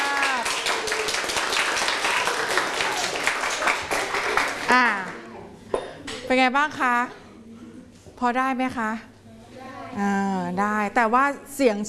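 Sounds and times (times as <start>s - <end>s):
group clapping: 0.0s - 5.3s
speech: 6.3s - 7.2s, 8.2s - 9.1s, 10.0s - 11.8s.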